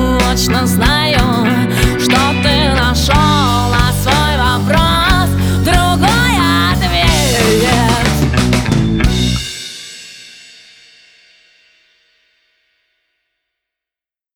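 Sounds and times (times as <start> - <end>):
blues music: 0.0 - 10.0.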